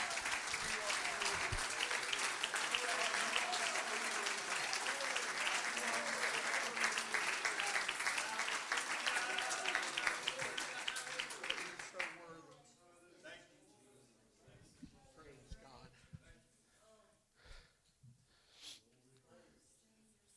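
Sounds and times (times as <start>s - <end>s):
audience clapping hands: 0.0s - 12.4s.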